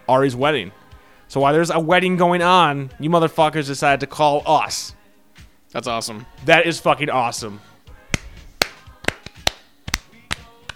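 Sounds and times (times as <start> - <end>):
speech: 0.1 - 5.0, 5.7 - 7.7
golf clap: 8.1 - 10.7.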